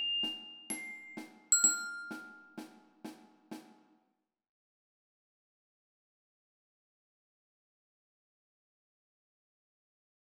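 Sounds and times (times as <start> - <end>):
glockenspiel: 0.0 - 2.8.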